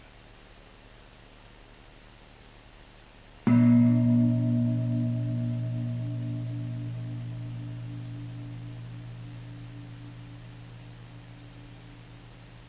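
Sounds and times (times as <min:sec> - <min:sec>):
meditation gong ringing: 0:03.5 - 0:12.6.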